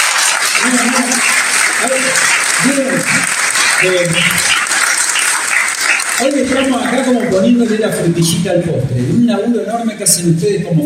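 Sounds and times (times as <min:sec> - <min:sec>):
audience applause for a provincial team at a gathering: 0:00.0 - 0:08.6
speech: 0:00.6 - 0:04.7, 0:06.2 - 0:10.8.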